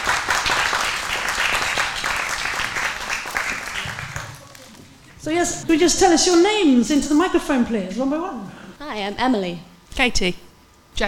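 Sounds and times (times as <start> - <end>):
audience applause: 0.0 - 4.8
speech: 5.2 - 10.4.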